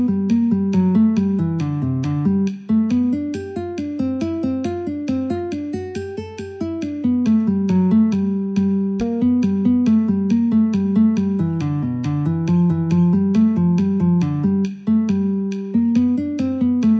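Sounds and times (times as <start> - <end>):
guitar playing in G: 0.0 - 16.9
metronome clicking: 0.0 - 16.9.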